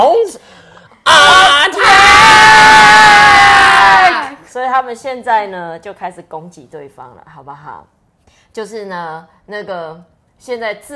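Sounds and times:
speech: 0:00.0 - 0:01.9, 0:04.8 - 0:10.9
crowd yelling and cheering: 0:01.1 - 0:04.4.

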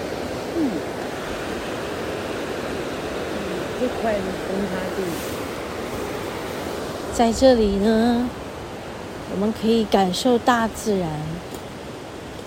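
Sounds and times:
rushing stream near a waterfall: 0:00.0 - 0:12.4
speech: 0:03.8 - 0:05.4, 0:07.2 - 0:08.4, 0:09.3 - 0:11.6.

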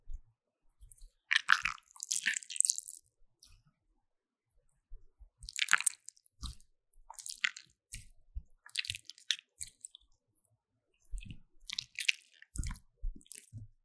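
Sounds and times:
short wet clicks and sticky pops of slime: 0:01.3 - 0:03.0, 0:05.4 - 0:08.1, 0:08.7 - 0:10.0, 0:11.0 - 0:13.5
slime squished and slapped: 0:01.3 - 0:03.1, 0:05.4 - 0:08.1, 0:08.7 - 0:10.0, 0:11.0 - 0:13.5.

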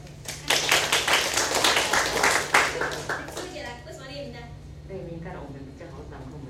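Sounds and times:
audience applause: 0:00.3 - 0:03.6.

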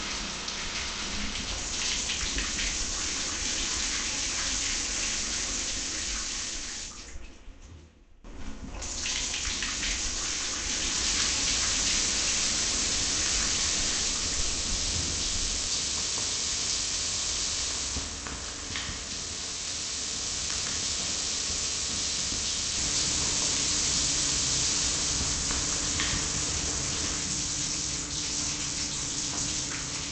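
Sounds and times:
shower running with falling water: 0:00.0 - 0:07.3, 0:08.3 - 0:30.0.

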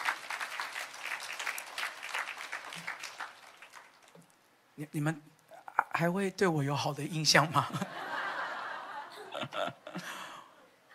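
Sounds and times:
audience clapping hands: 0:00.0 - 0:04.4
speech: 0:04.8 - 0:05.3, 0:06.0 - 0:08.0
laughter: 0:07.6 - 0:10.4.

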